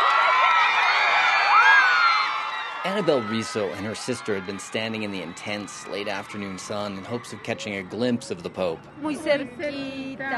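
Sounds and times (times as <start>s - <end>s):
bright rising whoop: 0.0s - 5.8s
roadside crowd cheering as the popemobile passes outside León airport: 0.0s - 10.3s
speech: 2.8s - 10.3s.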